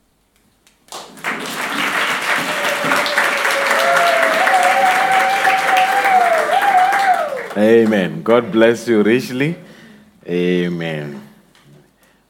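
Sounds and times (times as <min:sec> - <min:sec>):
audience applauding newlyweds: 0:00.9 - 0:08.4
speech: 0:07.6 - 0:11.2.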